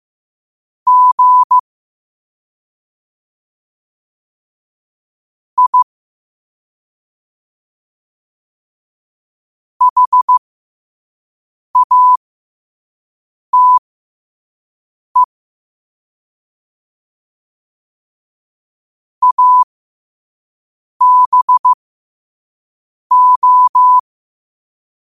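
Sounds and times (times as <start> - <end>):
morse code at 5 wpm: 0.9 - 1.6, 5.6 - 5.9, 9.8 - 10.4, 11.8 - 12.2, 13.6 - 13.8, 19.2 - 19.6, 21.0 - 21.8, 23.1 - 24.0.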